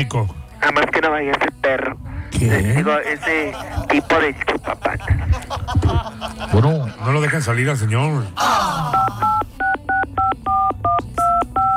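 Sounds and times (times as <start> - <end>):
speech: 0.0 - 9.4
laughter: 3.0 - 7.2
touch-tone beeps of a phone number being dialed: 8.9 - 11.7.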